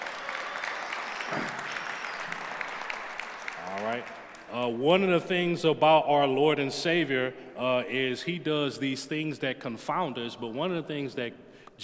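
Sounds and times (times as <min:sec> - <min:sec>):
audience hand clapping: 0:00.0 - 0:04.6
speech: 0:01.3 - 0:01.6, 0:04.0 - 0:11.8.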